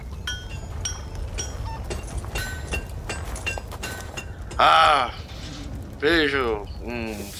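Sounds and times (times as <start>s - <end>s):
low rumble: 0.0s - 7.3s
blacksmith hammering metal in a forge: 0.9s - 5.0s
speech: 4.6s - 5.2s, 6.0s - 7.3s.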